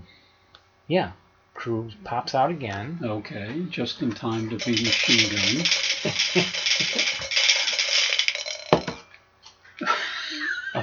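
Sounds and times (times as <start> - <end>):
speech: 0.9 - 7.4
dice rolling: 4.3 - 9.0
laughter: 9.8 - 10.8.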